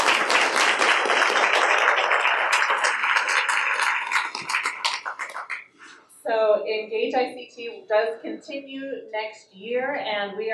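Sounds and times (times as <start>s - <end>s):
audience applause for a panel: 0.0s - 5.8s
speech: 6.8s - 10.5s.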